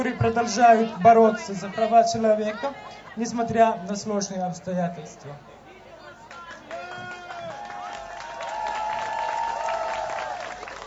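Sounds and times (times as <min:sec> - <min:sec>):
speech: 0:00.0 - 0:05.6
audience applause: 0:06.3 - 0:10.8
cheering: 0:06.3 - 0:10.8.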